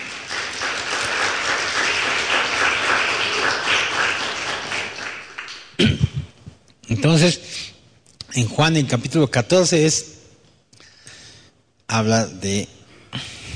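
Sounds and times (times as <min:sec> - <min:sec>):
audience applauding: 0:00.0 - 0:05.8
speech: 0:05.8 - 0:06.0, 0:06.9 - 0:07.6, 0:08.4 - 0:10.1, 0:11.9 - 0:13.3.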